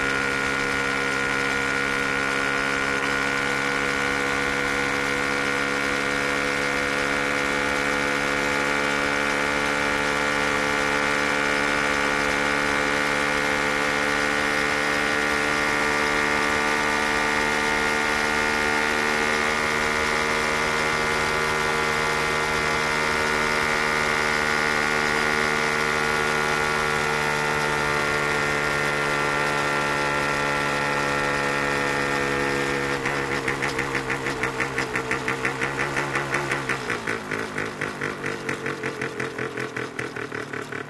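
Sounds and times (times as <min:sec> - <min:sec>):
motorcycle starting, moving and turning off: 0:00.0 - 0:40.8.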